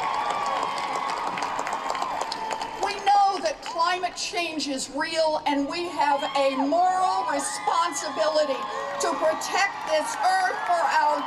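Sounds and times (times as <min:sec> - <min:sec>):
crowd cheering and applauding at Elizabeth Warren rally on Boston Common: 0:00.0 - 0:03.7, 0:06.0 - 0:11.2
speech: 0:04.2 - 0:11.2.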